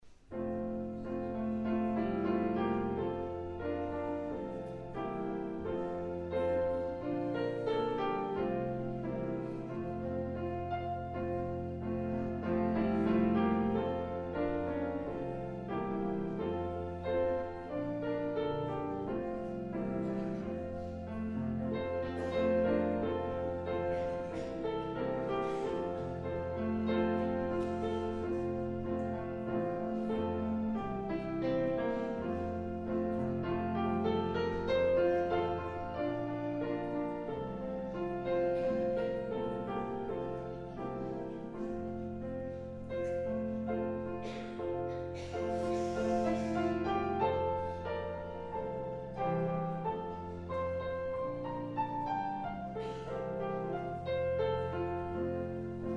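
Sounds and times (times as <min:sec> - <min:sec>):
prelude music: 0:00.0 - 0:55.9.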